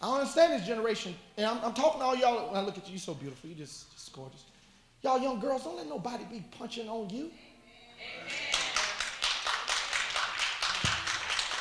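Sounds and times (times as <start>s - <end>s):
speech: 0.2s - 8.5s
audience clapping: 8.3s - 11.5s.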